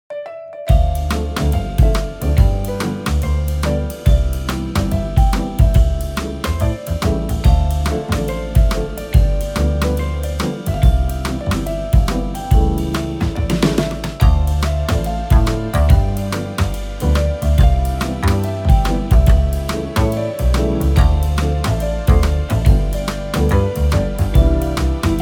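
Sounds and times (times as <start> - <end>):
easy elevator music: 0.1 - 25.2.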